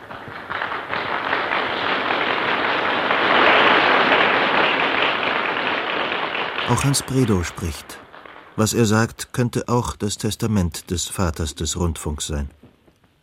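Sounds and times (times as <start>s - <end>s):
applause in archival broadcast recording: 0.0s - 7.7s
speech: 6.7s - 8.0s, 8.6s - 12.6s.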